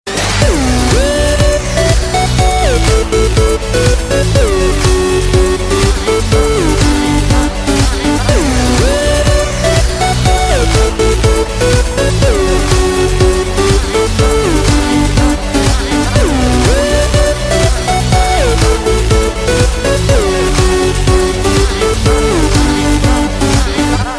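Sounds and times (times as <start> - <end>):
party beats: 0.1 - 24.1.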